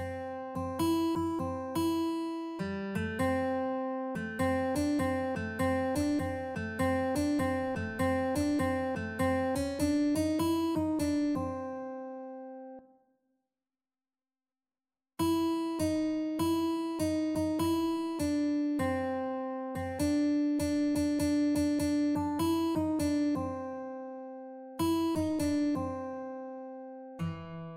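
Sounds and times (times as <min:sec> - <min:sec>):
guitar duet: 0:00.0 - 0:12.8, 0:15.2 - 0:27.7.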